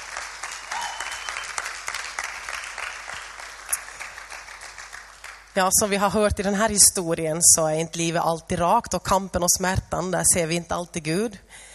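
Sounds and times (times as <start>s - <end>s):
crowd applauding: 0.0s - 5.6s
speech: 5.6s - 11.7s.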